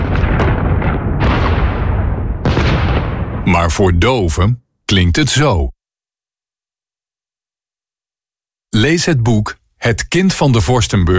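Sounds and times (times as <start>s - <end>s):
heavy bombardment of artillery explosions: 0.0s - 4.4s
speech: 3.6s - 5.8s, 8.8s - 11.1s.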